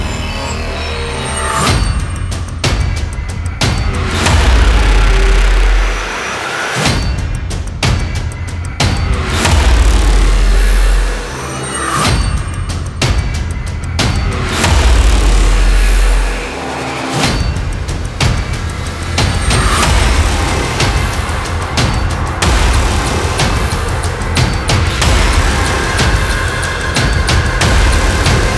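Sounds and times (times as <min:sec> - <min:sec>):
horror teaser countdown: 0:00.0 - 0:28.5
scary background music: 0:00.0 - 0:28.5.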